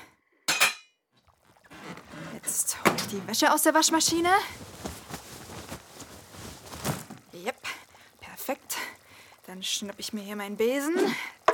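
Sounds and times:
soup pot placed on the stove: 0.5 - 0.9
speech: 2.5 - 4.7, 9.6 - 11.3
shuffling and rustling of kitchen activity: 3.8 - 7.3.

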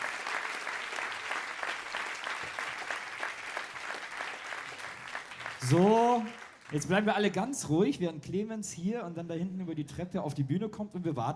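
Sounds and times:
audience applause for quiz winner: 0.0 - 7.3
speech: 5.6 - 11.3.

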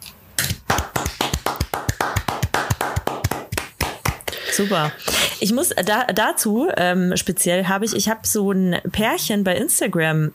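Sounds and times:
hand clapping: 0.4 - 4.9
speech: 4.6 - 10.3.

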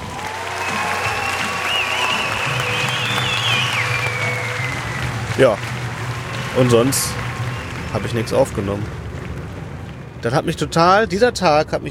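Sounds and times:
faint whistles or cheers: 0.0 - 8.6
large audience applause after a film: 0.0 - 9.5
speech: 5.4 - 5.7, 6.6 - 7.2, 7.9 - 9.0, 10.2 - 11.8.

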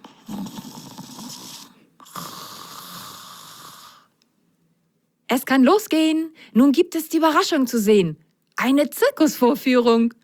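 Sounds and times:
soft snoring: 0.0 - 4.2
speech: 5.3 - 10.2.

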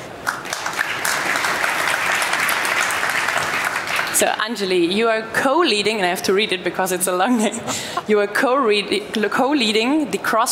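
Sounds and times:
audience applause welcoming a guest at an event on AI in healthcare: 0.2 - 4.2
speech: 4.2 - 10.4.

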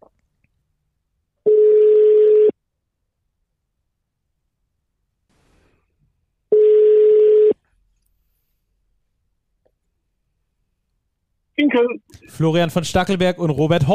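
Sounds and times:
telephone ringing tone: 1.5 - 2.6, 6.5 - 7.6
speech: 11.7 - 13.9.

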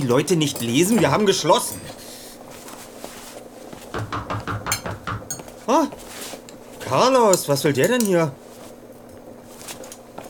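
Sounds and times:
speech: 0.0 - 2.0, 5.7 - 6.0, 6.9 - 8.4
hammering on a restaurant door: 3.9 - 5.4.

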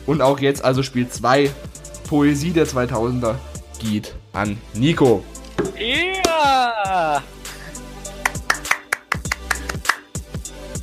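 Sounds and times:
speech: 0.0 - 7.4
person clapping hands: 5.6 - 6.6, 8.1 - 10.2.

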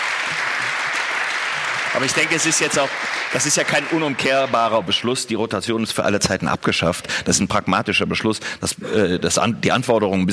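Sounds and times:
applause: 0.0 - 5.3
speech: 2.0 - 10.3.

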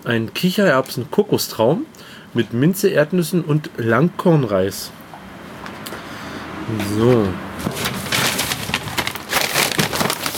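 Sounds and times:
speech: 0.0 - 5.0, 6.7 - 7.9
meal-kit bag being torn open: 7.6 - 10.3.

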